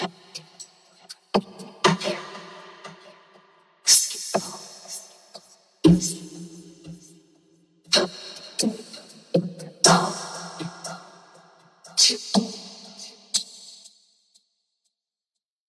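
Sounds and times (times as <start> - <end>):
electronic a cappella vocals: 0.0 - 3.2, 3.9 - 7.2, 7.9 - 13.5.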